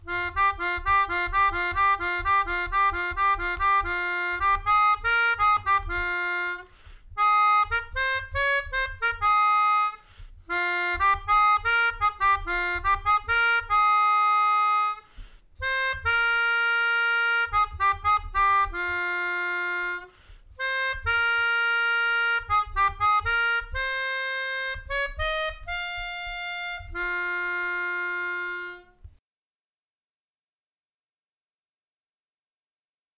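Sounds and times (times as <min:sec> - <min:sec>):
melodica: 0:00.0 - 0:29.0.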